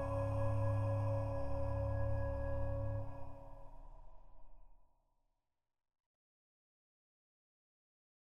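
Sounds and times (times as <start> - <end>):
spooky sad remix music: 0.0 - 3.8.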